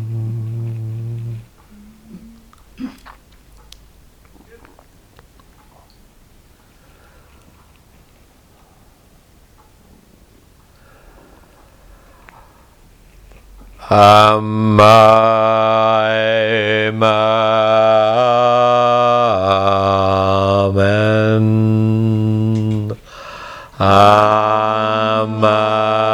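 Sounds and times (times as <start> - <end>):
meditative chanting: 0.0 - 2.5, 13.7 - 23.1, 23.7 - 26.1.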